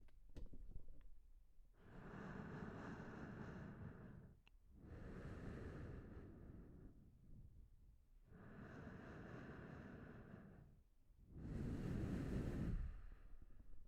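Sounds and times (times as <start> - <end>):
heavy breathing: 1.8 - 7.1, 8.3 - 13.6.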